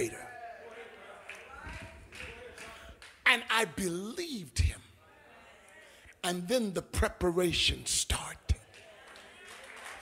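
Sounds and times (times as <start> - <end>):
audience clapping: 0.0 - 3.8, 8.5 - 10.0
speech: 3.3 - 4.8, 6.2 - 8.4.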